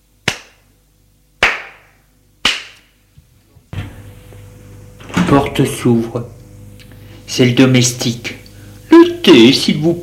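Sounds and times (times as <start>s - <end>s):
hand claps: 0.2s - 0.6s, 1.4s - 2.9s
speech: 5.3s - 6.4s, 7.4s - 8.4s, 9.2s - 10.0s.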